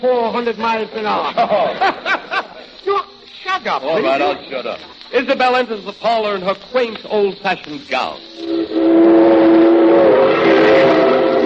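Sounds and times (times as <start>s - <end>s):
speech: 0.0s - 2.1s, 3.6s - 9.5s
laughter: 1.0s - 2.8s
steam-style train whistle: 8.4s - 11.4s.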